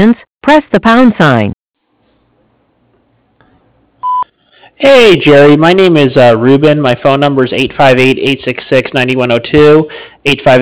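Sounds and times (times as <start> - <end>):
speech: 0.0 - 1.6, 4.8 - 10.6
voicemail recording tone: 4.0 - 4.3.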